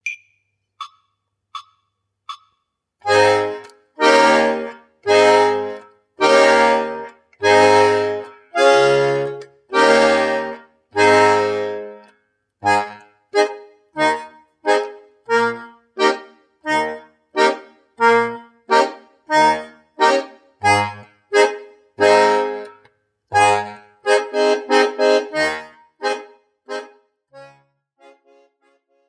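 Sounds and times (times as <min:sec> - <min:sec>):
musical accompaniment in A-flat major: 0:03.0 - 0:28.8.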